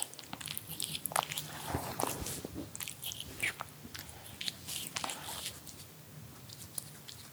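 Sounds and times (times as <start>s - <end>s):
kitten purring: 0.2s - 5.4s.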